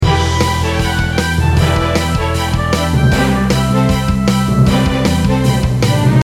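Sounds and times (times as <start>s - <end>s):
short RPG background music: 0.0s - 6.2s.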